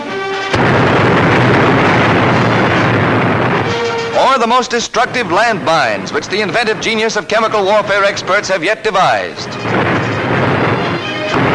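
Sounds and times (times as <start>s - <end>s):
25-shell rocket battery firing in a wartime newsreel: 0.3s - 11.5s
speech: 4.4s - 9.9s.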